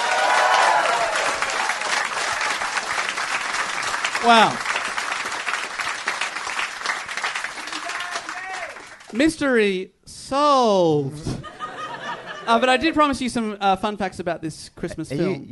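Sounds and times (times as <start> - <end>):
audience applause: 0.0 - 9.2
speech: 4.2 - 4.7, 9.1 - 11.3, 12.5 - 15.5
laughter: 11.1 - 12.9.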